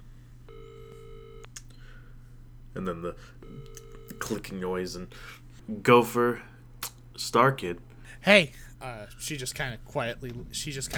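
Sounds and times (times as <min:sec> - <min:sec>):
phone call ringing tone: 0:00.5 - 0:05.6
speech: 0:02.8 - 0:06.5, 0:07.2 - 0:10.9.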